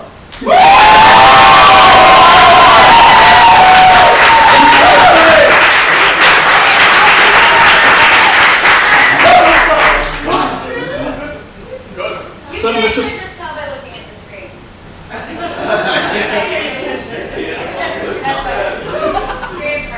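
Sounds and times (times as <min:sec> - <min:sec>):
audience clapping and cheering: 0:00.4 - 0:10.6
laughter: 0:15.1 - 0:19.9.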